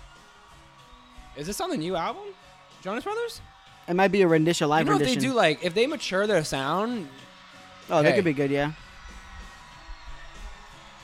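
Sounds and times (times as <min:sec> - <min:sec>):
fans screaming: 0:00.2 - 0:11.0
speech: 0:01.4 - 0:07.3, 0:07.9 - 0:08.8.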